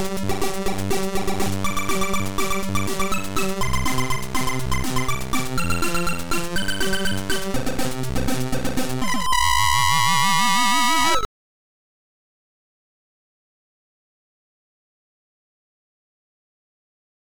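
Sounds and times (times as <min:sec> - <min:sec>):
techno music: 0:00.0 - 0:11.3.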